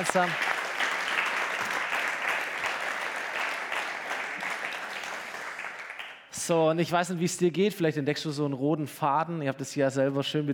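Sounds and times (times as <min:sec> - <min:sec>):
speech: 0:00.0 - 0:00.5, 0:06.4 - 0:10.5
audience applause: 0:00.0 - 0:06.2.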